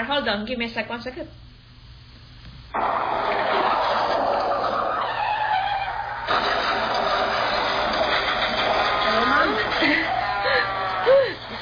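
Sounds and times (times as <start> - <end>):
speech: 0.1 - 1.4
car crashing: 2.8 - 9.8
laughter: 6.3 - 11.6.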